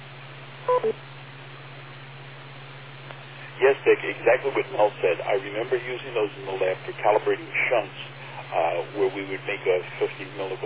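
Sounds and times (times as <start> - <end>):
radio net beep tone: 0.7 - 1.0
speech: 0.7 - 1.1, 3.6 - 10.6.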